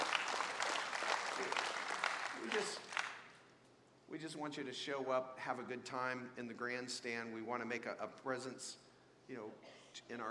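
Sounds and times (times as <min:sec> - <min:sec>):
group clapping: 0:00.0 - 0:03.4
speech: 0:02.4 - 0:02.8, 0:04.2 - 0:10.2.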